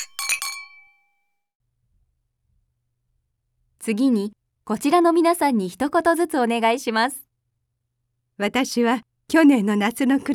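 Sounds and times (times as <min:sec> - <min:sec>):
glasses clinking in a wedding toast: 0:00.0 - 0:01.1
speech: 0:03.9 - 0:07.3, 0:08.4 - 0:10.3.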